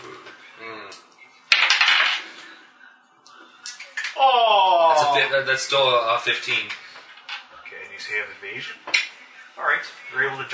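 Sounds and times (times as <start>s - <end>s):
dice clattering across a table: 1.5s - 2.4s, 7.1s - 7.5s
speech: 5.2s - 6.8s, 8.1s - 8.9s, 9.6s - 10.5s.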